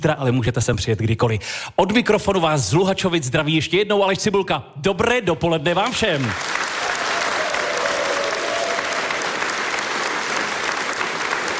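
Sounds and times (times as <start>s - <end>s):
speech: 0.0s - 6.6s
audience applause: 6.2s - 11.5s.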